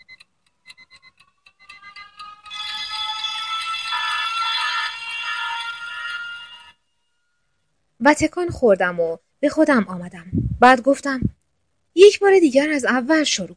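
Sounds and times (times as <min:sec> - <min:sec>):
alarm clock ringing: 0:00.6 - 0:07.4
speech: 0:08.0 - 0:11.3, 0:12.0 - 0:13.5.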